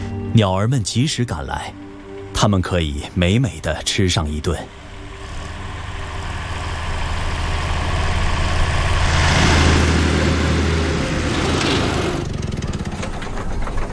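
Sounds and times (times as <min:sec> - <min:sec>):
speech: 0:00.4 - 0:01.8, 0:02.4 - 0:04.8
lawn mower engine running: 0:04.7 - 0:13.9.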